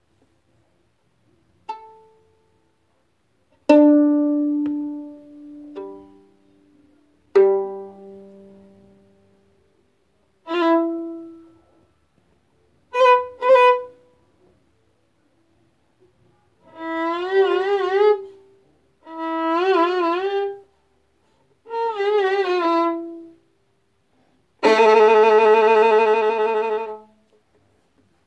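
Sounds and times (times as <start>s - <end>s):
violin: 3.7s - 9.4s, 10.4s - 11.8s, 12.9s - 14.1s, 16.6s - 20.8s, 21.6s - 23.5s, 24.6s - 27.2s.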